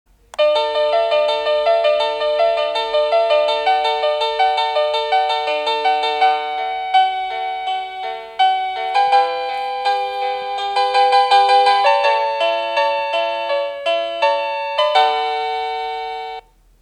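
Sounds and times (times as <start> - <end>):
bell ringing melody: 0.4 - 16.4.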